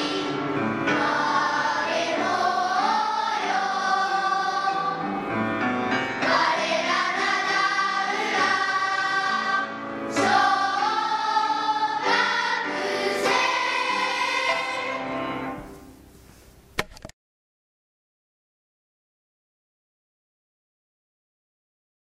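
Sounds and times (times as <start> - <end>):
school music: 0.0 - 16.7.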